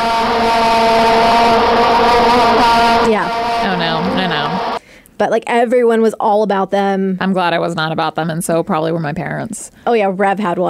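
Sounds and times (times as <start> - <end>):
plastic toy noisemaker being blown into: 0.0 - 4.8
speech: 5.3 - 10.6.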